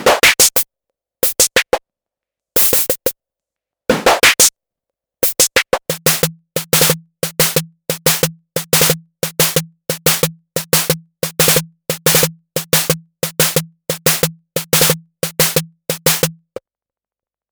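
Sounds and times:
modulated mutant snare: 0.2s - 0.6s, 2.6s - 3.1s, 4.1s - 4.5s, 5.2s - 16.4s.

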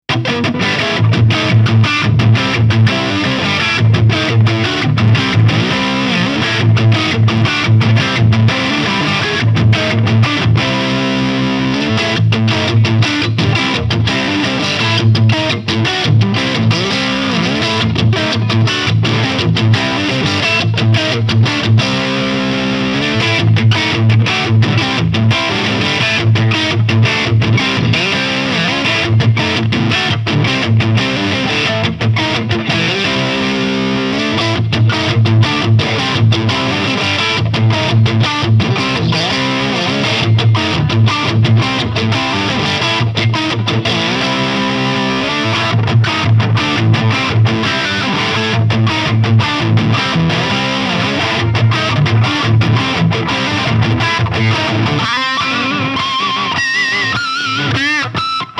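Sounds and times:
Ibanez RG 550 electric guitar lead on pickup 1: 0.0s - 58.5s.

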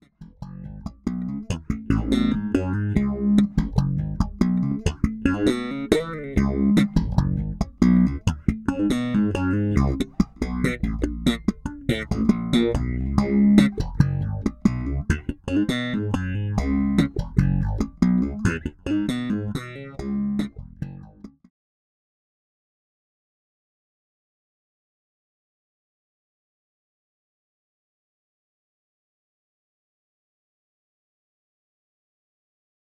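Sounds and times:
phaser slap bass line: 0.2s - 21.4s.

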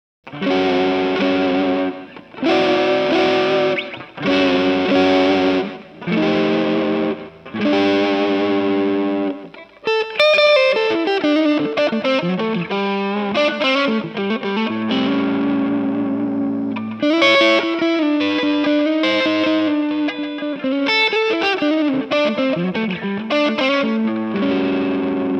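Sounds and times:
Gretsch electric guitar neck pickup: 0.3s - 25.3s.

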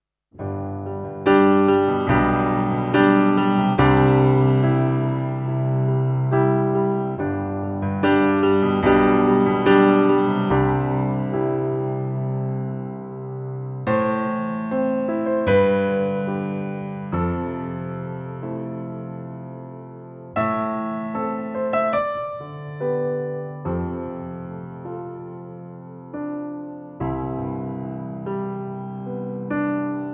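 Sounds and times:
Studiologic Numa X GT Vintage Grand piano: 0.3s - 30.1s.

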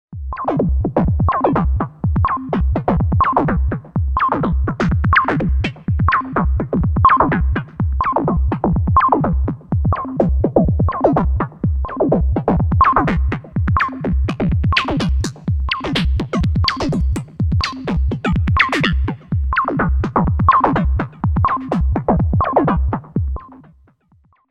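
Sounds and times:
Hydrasynth techno: 0.3s - 23.7s.

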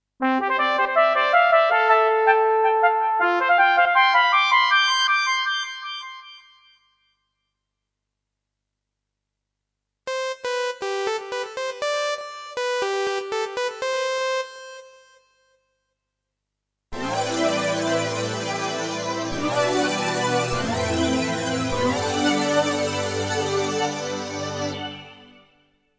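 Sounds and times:
Thomann AK X1100 synthesizer: 0.2s - 6.7s, 10.1s - 15.5s, 17.0s - 25.7s.

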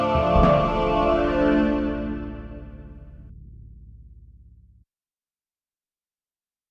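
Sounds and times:
chorale strings through a reverb pedal: 0.1s - 3.1s.

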